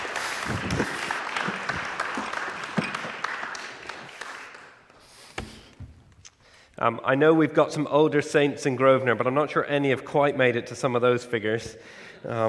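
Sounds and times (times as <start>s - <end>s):
audience applause: 0.0s - 4.9s
speech: 6.8s - 12.4s.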